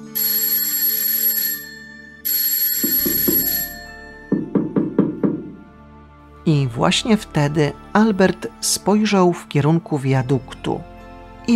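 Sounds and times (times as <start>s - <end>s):
school doorbell ringing: 0.0s - 4.8s
speech: 6.5s - 10.9s.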